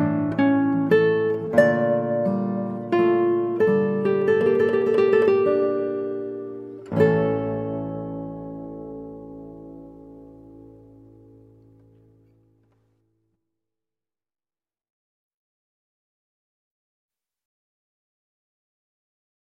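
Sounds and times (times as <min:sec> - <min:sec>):
baroque siciliana played on guitar: 0:00.0 - 0:13.0.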